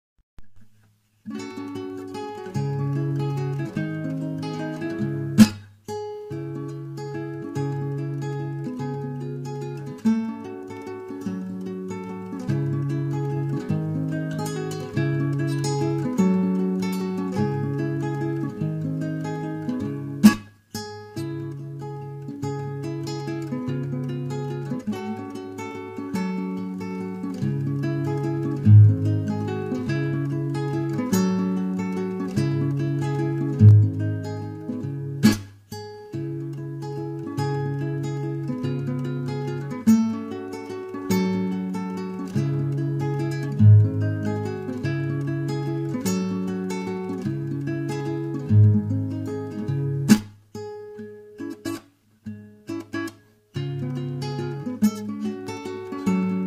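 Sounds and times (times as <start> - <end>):
instrumental music: 0.4 - 56.4.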